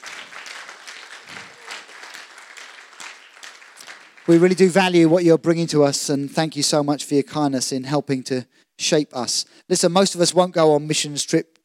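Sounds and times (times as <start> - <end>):
people clapping: 0.0 - 5.1
speech: 4.3 - 11.6.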